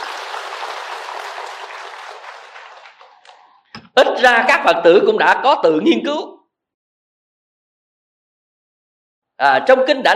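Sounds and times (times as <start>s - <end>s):
audience applause during a Buddhist dharma talk: 0.0s - 3.6s
speech: 4.0s - 6.3s, 9.4s - 10.1s.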